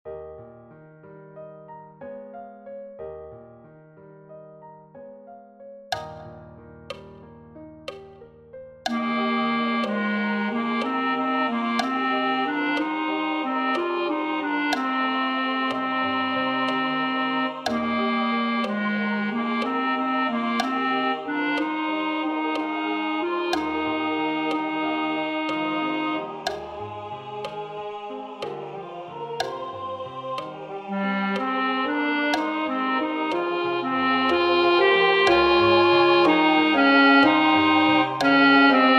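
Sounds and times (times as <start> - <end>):
wedding chorus: 8.9 - 38.9.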